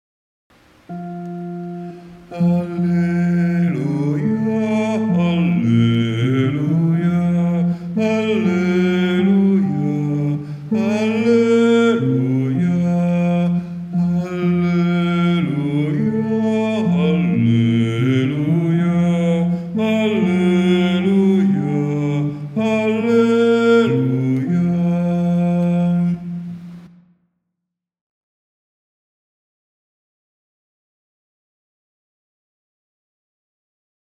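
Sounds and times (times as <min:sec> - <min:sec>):
men singing: 0:02.3 - 0:26.4.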